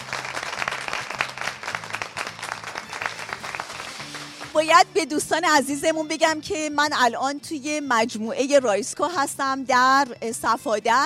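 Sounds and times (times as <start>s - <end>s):
audience applause at an event in Safadasht: 0.0s - 4.6s
speech: 4.6s - 11.0s.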